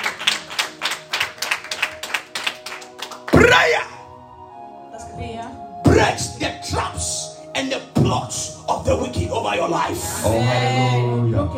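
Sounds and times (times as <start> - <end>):
audience clapping: 0.0 - 3.9
speech: 3.4 - 3.9, 6.0 - 11.5.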